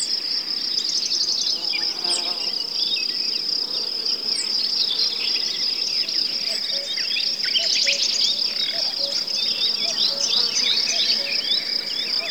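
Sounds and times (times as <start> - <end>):
broad-leaved woodland ambience in late spring: 0.1 - 12.2.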